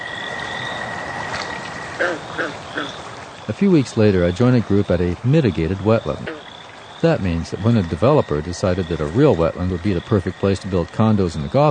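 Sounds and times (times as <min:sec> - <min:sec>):
American toad trilling: 0:00.0 - 0:03.5, 0:05.6 - 0:11.6
warbling calls: 0:00.0 - 0:11.6
speech: 0:02.0 - 0:11.6.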